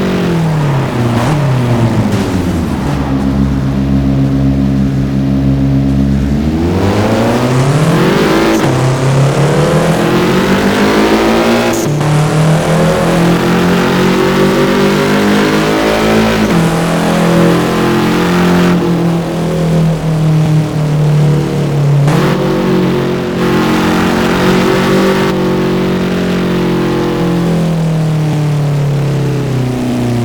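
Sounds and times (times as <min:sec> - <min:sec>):
Mitsubishi Lancer Evolution 9: 0:00.0 - 0:30.2.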